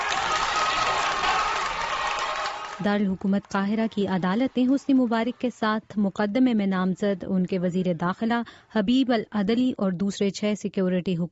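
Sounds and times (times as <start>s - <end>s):
courtroom crowd cheering and chanting slogans: 0.0s - 5.8s
speech: 2.8s - 11.3s.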